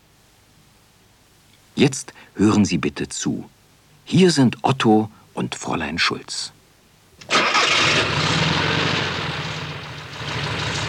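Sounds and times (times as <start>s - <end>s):
speech: 1.8s - 6.6s
Volkswagen car engine starting and idling: 7.2s - 10.8s.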